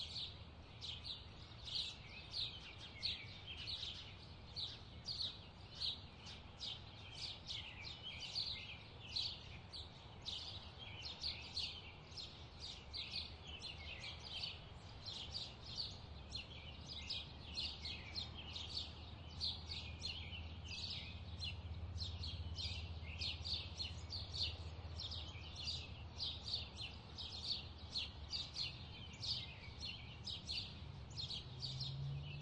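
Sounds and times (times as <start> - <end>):
birds chirping: 0.0 - 32.4.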